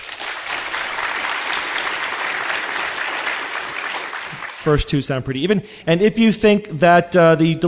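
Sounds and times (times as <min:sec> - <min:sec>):
audience applause: 0:00.0 - 0:04.8
speech: 0:04.6 - 0:07.6.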